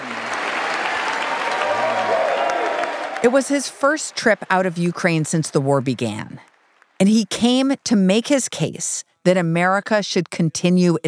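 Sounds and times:
cheers in Congress: 0.0 - 7.0
thunderous applause in Congress: 0.0 - 7.0
speech: 3.2 - 11.0.

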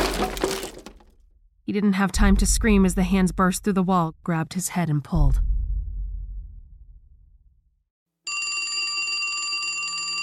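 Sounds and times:
speech: 1.7 - 5.5
telephone ringing in a grimy office: 8.3 - 10.2.

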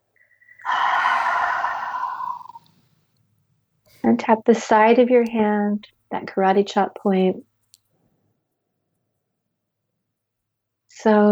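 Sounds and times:
big deep breath sighing exhale: 0.5 - 2.7
speech: 4.0 - 7.5, 11.0 - 11.3.

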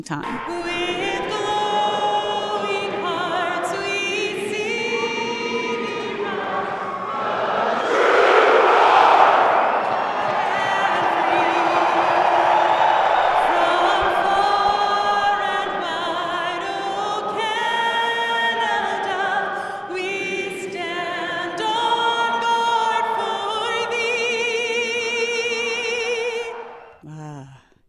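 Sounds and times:
speech: 0.0 - 1.1
hockey fans roaring and cheering in an arena: 0.2 - 24.6, 25.4 - 27.0
whoops and shouted voices: 4.9 - 15.7.

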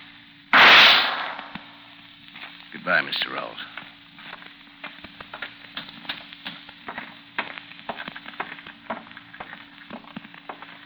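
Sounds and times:
gunshot sound effect in a radio drama: 0.6 - 1.6
speech: 2.8 - 3.8.

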